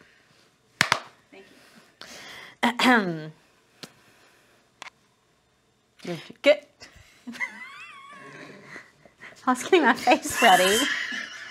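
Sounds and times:
hand claps as a slate marker: 0.8s - 1.1s
speech: 2.6s - 3.4s, 6.1s - 6.6s, 9.5s - 11.0s.

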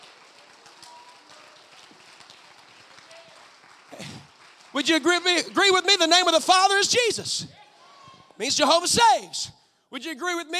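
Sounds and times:
crowd clapping: 0.0s - 7.2s
speech: 4.8s - 7.6s, 8.4s - 10.5s
person shouting: 6.5s - 9.5s.

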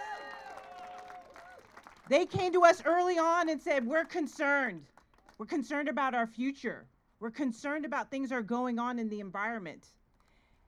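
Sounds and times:
rally crowd applause: 0.0s - 2.1s
speech: 2.1s - 10.0s.

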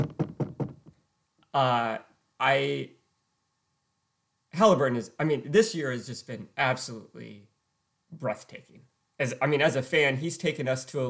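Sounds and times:
knuckles knocking on wood: 0.0s - 1.0s
speech: 1.5s - 3.0s, 4.5s - 7.5s, 8.1s - 11.0s.

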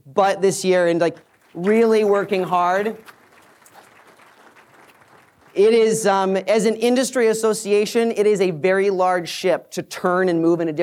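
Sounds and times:
speech: 0.1s - 3.2s, 5.6s - 10.8s
audience applause for the board: 0.8s - 6.3s.

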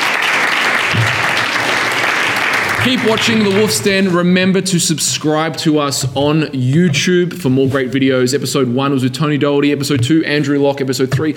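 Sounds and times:
live studio audience applause: 0.0s - 4.3s
speech: 2.8s - 11.3s.

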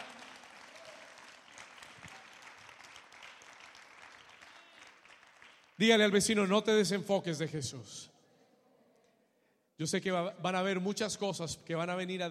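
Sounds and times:
crowd applause: 0.0s - 5.8s
speech: 5.8s - 8.1s, 9.8s - 12.2s.

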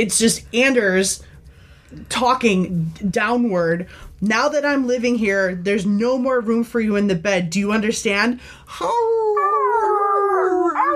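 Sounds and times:
speech: 0.0s - 1.3s, 1.9s - 9.5s
dog whining in video game: 9.2s - 10.9s.

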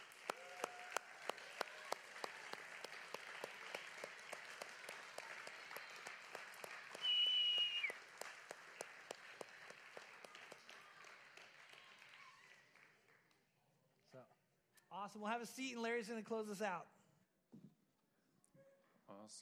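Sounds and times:
audience applause: 0.0s - 13.2s
high whistle-like tone: 7.0s - 8.0s
speech: 15.0s - 16.9s, 19.3s - 19.4s.

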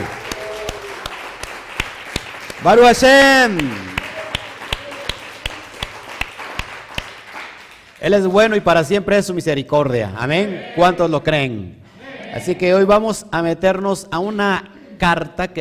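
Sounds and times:
audience applause: 0.0s - 8.0s
speech: 2.6s - 3.9s, 8.0s - 11.8s, 12.4s - 15.6s.

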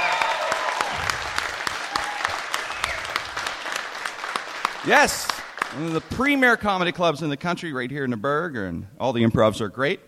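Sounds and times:
comedy club audience applause: 0.0s - 6.6s
speech: 4.8s - 10.0s.

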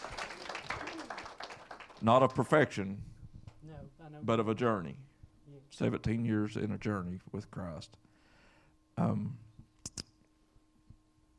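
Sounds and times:
crowd clapping: 0.0s - 2.6s
speech: 2.0s - 8.0s, 9.0s - 9.4s.

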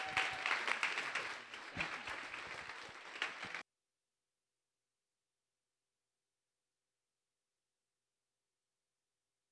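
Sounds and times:
church congregation applauding in a standing ovation: 0.0s - 3.6s.

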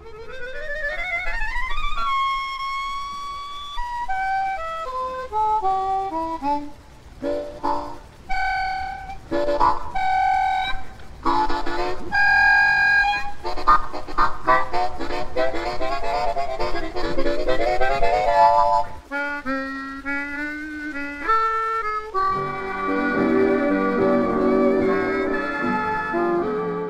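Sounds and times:
recorded harmonica piece: 0.0s - 26.8s.

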